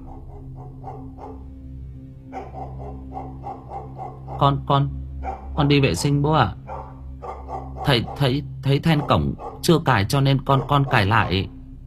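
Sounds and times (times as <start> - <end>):
dog barking in the distance outside by an empty lane at night: 0.0 - 1.5, 2.3 - 4.6, 5.2 - 5.6, 6.7 - 9.8, 10.4 - 11.6
speech: 4.4 - 5.0, 5.6 - 6.6, 7.9 - 11.6.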